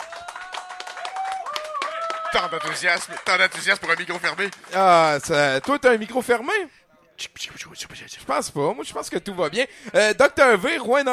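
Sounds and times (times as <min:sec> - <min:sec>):
audience clapping: 0:00.0 - 0:06.2
speech: 0:02.3 - 0:11.1.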